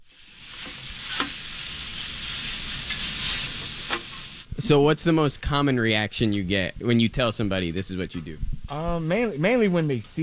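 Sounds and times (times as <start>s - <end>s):
food sizzling on a hot hibachi grill: 0.0s - 4.5s
spatula scraping against the cooking surface: 0.0s - 4.5s
speech: 4.6s - 10.2s.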